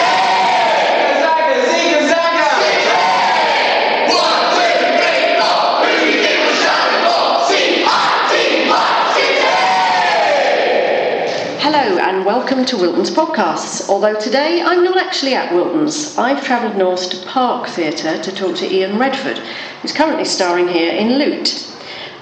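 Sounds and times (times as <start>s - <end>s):
football crowd chanting in the stands: 0.0s - 11.4s
speech: 12.6s - 21.7s.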